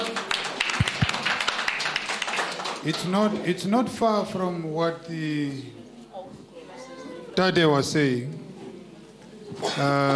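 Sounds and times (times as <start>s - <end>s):
audience applause: 0.0s - 3.0s
speech: 2.8s - 5.8s, 7.4s - 8.4s, 9.6s - 10.1s.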